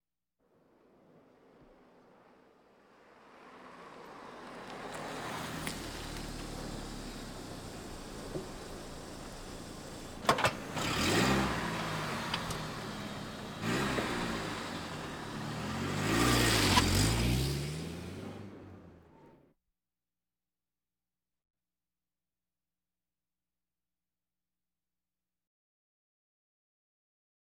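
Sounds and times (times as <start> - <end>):
various automobiles: 0.5 - 19.4.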